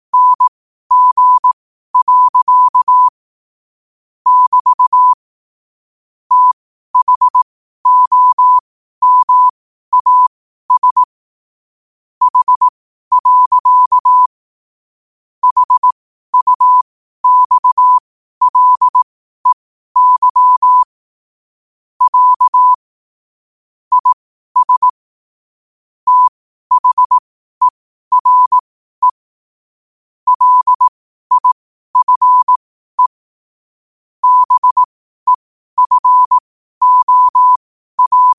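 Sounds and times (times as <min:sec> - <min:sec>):
morse code at 5 wpm: 0:00.1 - 0:03.1, 0:04.3 - 0:05.2, 0:06.3 - 0:11.1, 0:12.2 - 0:14.3, 0:15.4 - 0:20.9, 0:22.0 - 0:22.8, 0:23.9 - 0:25.0, 0:26.1 - 0:29.2, 0:30.3 - 0:33.2, 0:34.2 - 0:38.3.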